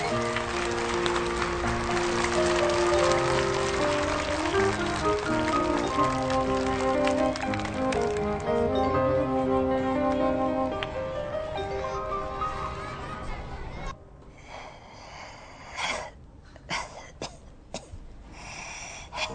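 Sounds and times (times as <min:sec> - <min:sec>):
audience applause: 0:00.0 - 0:08.8
sustained musical tones: 0:00.0 - 0:13.4.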